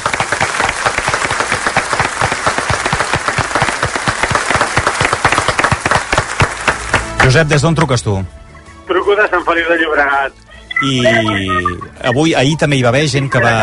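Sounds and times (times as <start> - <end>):
group applauding in the studio: 0.0 - 7.6
speech: 7.3 - 8.4, 9.0 - 13.6.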